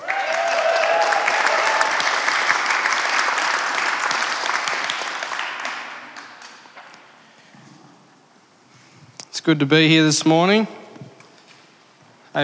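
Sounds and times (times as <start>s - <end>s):
audience clapping: 0.0s - 7.2s
speech: 9.5s - 10.8s.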